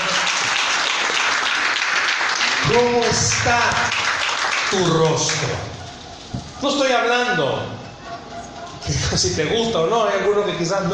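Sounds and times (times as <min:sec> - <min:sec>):
applause: 0:00.0 - 0:05.8
speech: 0:02.7 - 0:03.9, 0:04.7 - 0:05.7, 0:06.6 - 0:07.8, 0:08.8 - 0:10.9
laughter: 0:08.0 - 0:09.4.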